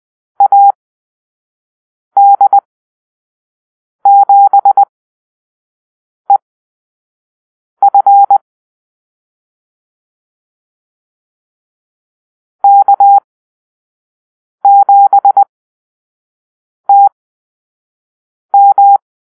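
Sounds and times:
morse code call-sign beeps: 0.4 - 0.7, 2.2 - 2.6, 4.1 - 4.8, 7.8 - 8.4, 12.6 - 13.2, 14.6 - 15.5, 16.9 - 17.1, 18.6 - 19.0.

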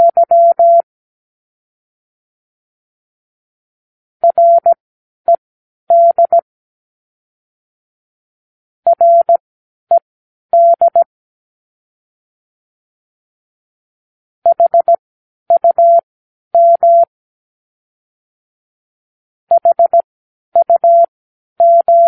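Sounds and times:
morse code practice words: 0.0 - 0.8, 4.2 - 6.4, 8.9 - 9.4, 10.6 - 11.1, 14.5 - 16.0, 16.6 - 17.1, 19.5 - 20.0, 20.6 - 22.0.

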